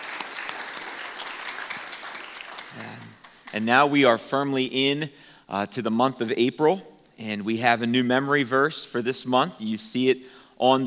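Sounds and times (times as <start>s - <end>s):
applause: 0.0s - 3.9s
speech: 2.8s - 10.8s.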